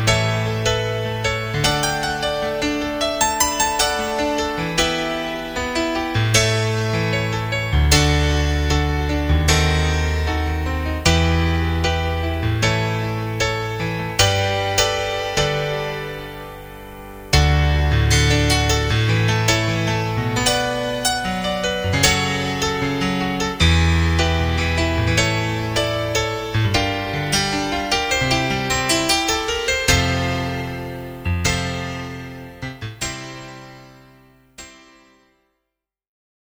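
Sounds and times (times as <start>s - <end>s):
ragtime piano in a piano bar: 0.0s - 35.1s.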